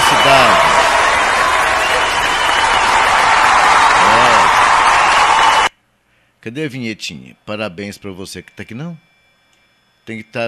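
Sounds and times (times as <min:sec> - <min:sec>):
crowd applause: 0:00.0 - 0:05.7
speech: 0:06.4 - 0:09.1, 0:10.1 - 0:10.4.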